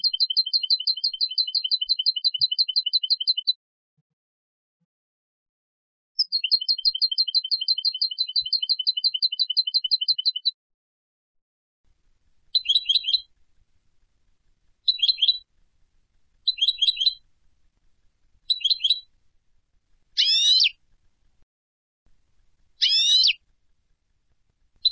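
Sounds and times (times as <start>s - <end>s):
European goldfinch Carduelis carduelis rapid bright chirps: 0.0s - 3.6s, 6.2s - 10.5s, 12.5s - 13.3s, 14.8s - 15.5s, 16.4s - 17.2s, 18.4s - 19.1s, 20.2s - 20.8s, 22.8s - 23.4s.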